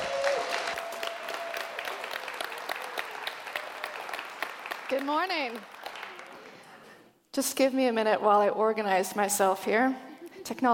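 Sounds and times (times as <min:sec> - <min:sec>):
audience applause welcoming a speaker: 0:00.0 - 0:06.8
speech: 0:04.9 - 0:05.7, 0:07.4 - 0:10.7.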